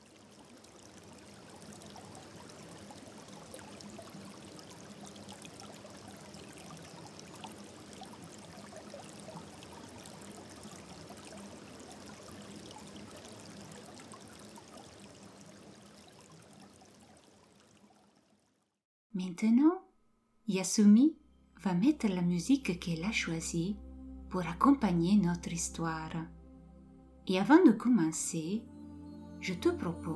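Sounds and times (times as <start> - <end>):
water flowing gently in a glacier-melt irrigation channel: 0.0 - 18.8
speech: 19.2 - 19.8, 20.5 - 26.4, 27.2 - 28.7, 29.4 - 30.1.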